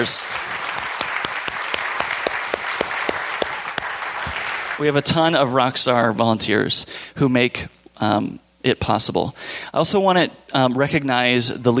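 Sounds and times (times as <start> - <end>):
speech: 0.0 - 0.5, 4.8 - 11.7
audience applause: 0.0 - 4.9.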